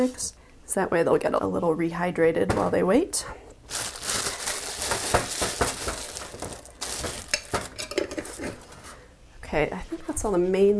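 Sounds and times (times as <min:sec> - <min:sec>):
speech: 0:00.0 - 0:03.9, 0:09.5 - 0:10.7
scraping as chopped ingredients are slid into a tamarind, rice wine, vinegar and fish sauce mix: 0:03.7 - 0:09.0.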